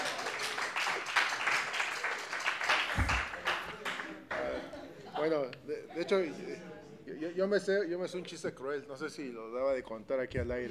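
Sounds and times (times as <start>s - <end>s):
crowd applause: 0.0s - 4.7s
laughter: 2.8s - 6.8s
speech: 5.2s - 10.6s.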